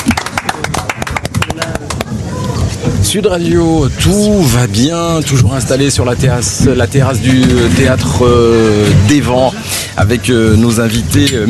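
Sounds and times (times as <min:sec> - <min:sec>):
applause, hands clapping: 0:00.0 - 0:02.1
speech: 0:03.1 - 0:11.4.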